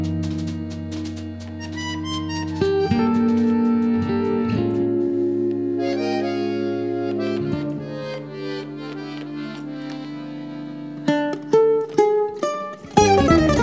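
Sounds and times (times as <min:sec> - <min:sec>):
samba blues music: 0:00.0 - 0:13.6.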